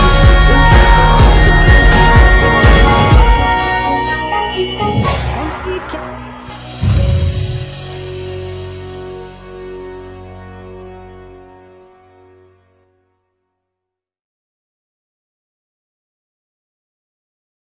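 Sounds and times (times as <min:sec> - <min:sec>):
karaoke backing track: 0:00.0 - 0:07.0.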